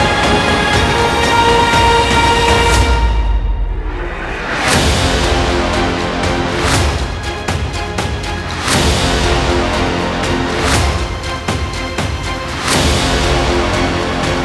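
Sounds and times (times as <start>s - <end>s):
heroic music: 0.0s - 14.4s.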